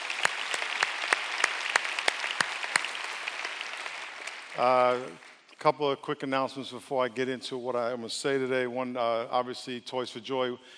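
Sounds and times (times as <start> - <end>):
audience clapping: 0.0 - 5.6
speech: 4.6 - 10.7.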